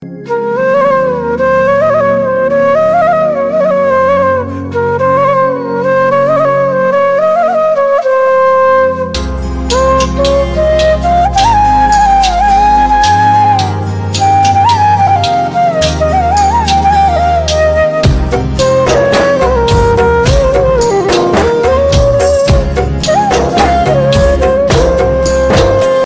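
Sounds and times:
sad flute ringtone: 0.0 - 26.0.

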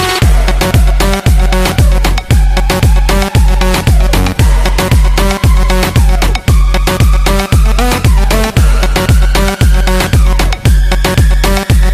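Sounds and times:
trance ringtone: 0.2 - 11.9.

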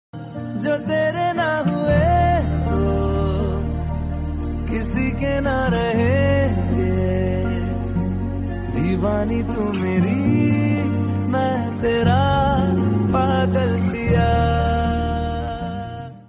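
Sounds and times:
Bollywood love song ringtone: 0.2 - 16.2.

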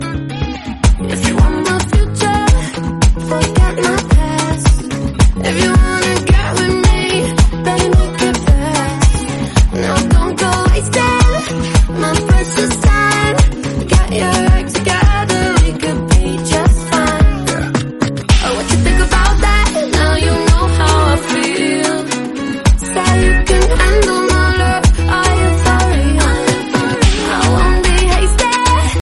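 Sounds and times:
dance music ringtone: 0.8 - 28.9.

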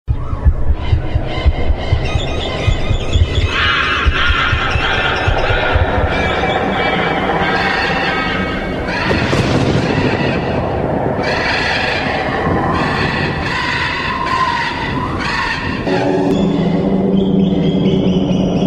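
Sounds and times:
haunted ringtone: 0.1 - 18.6.

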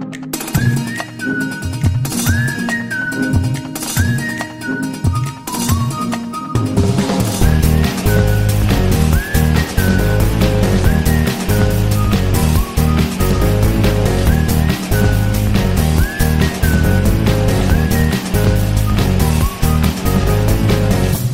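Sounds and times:
castle theme ringtone melody: 0.3 - 21.2.

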